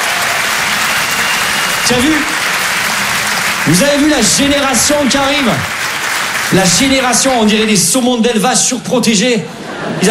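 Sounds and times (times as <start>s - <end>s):
audience applause: 0.0s - 8.0s
speech: 1.9s - 2.4s, 3.6s - 5.8s, 6.5s - 10.1s.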